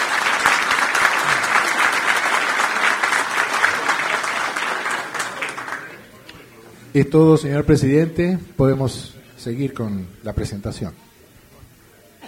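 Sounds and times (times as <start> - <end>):
welcoming applause: 0.0 - 6.1
speech: 7.0 - 11.0.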